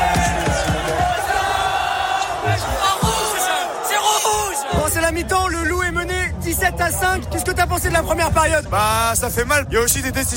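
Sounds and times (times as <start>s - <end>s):
large crowd of rugby fans cheering and chanting: 0.0s - 7.6s
speech: 6.8s - 10.3s.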